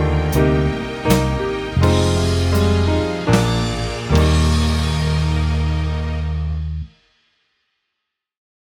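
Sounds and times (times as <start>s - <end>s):
carol backing track: 0.0s - 6.9s.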